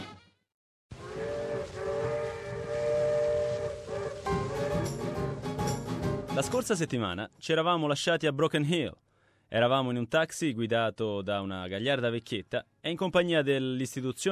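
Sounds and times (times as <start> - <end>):
loud steam train whistle: 1.0 - 5.8
speech: 6.4 - 14.3.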